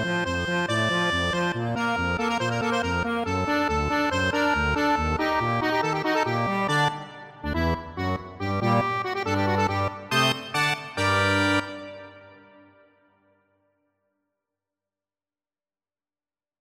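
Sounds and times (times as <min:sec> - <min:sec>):
accordion playing a Hungarian dance: 0:00.0 - 0:12.3.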